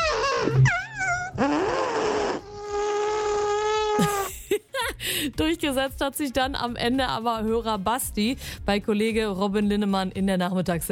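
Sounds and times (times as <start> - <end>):
person imitating an elephant with their mouth: 0.0 - 4.3
speech: 5.2 - 10.9.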